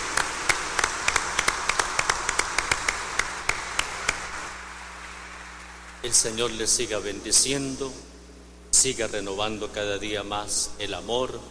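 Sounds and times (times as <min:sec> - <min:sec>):
audience applauding in welcome: 0:00.0 - 0:06.0
speech: 0:06.0 - 0:08.1, 0:08.8 - 0:11.4.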